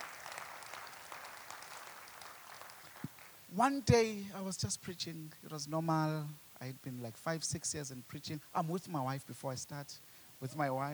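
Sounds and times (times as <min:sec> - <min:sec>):
audience clapping hands: 0:00.0 - 0:03.4
speech: 0:03.5 - 0:10.9.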